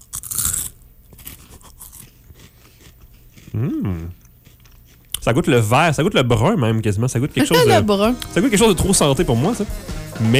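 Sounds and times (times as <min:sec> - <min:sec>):
crisp pea snack bitten and chewed: 0:00.0 - 0:05.5
speech: 0:03.5 - 0:04.2, 0:05.2 - 0:10.3
person humming: 0:07.4 - 0:08.1.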